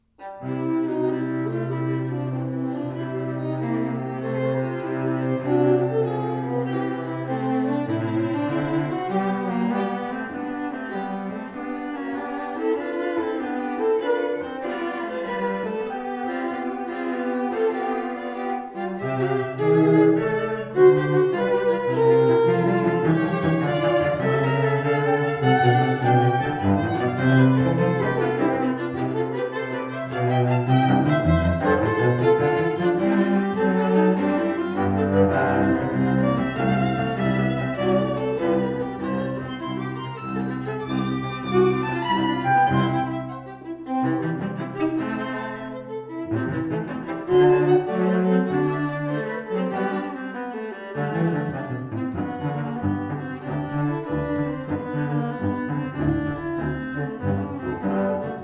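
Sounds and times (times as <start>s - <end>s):
musical trio: 0.2s - 58.4s.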